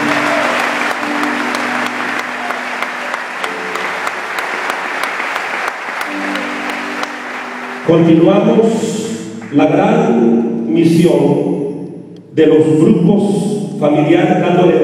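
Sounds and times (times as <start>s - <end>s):
audience applause: 0.0s - 8.2s
speech: 7.9s - 11.5s, 12.4s - 14.8s.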